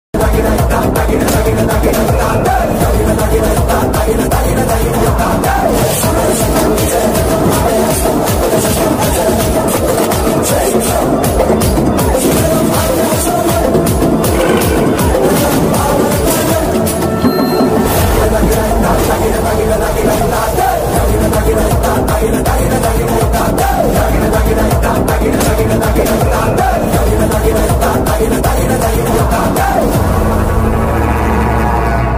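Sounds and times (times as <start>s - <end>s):
trailer background music ringtone: 0.2s - 32.1s.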